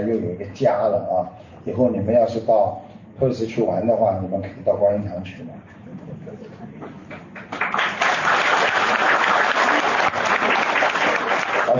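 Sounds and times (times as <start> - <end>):
speech: 0.0 - 7.0
audience applause: 7.4 - 11.7.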